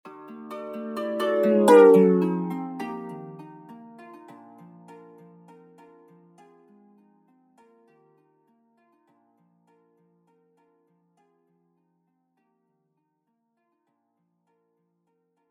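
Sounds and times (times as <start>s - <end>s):
Doppler-shifted iOS ringtones: 0.9s - 3.4s.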